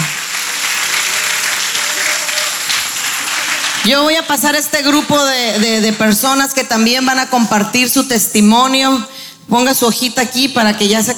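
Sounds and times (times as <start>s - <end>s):
audience applause: 0.0s - 4.7s
speech: 3.8s - 11.1s.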